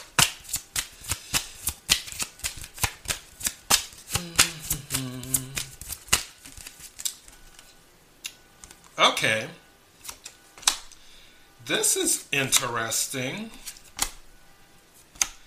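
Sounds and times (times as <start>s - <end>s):
Love Oracle tarot deck being shuffled: 0.1s - 7.7s
speech: 9.0s - 9.6s, 11.7s - 13.7s.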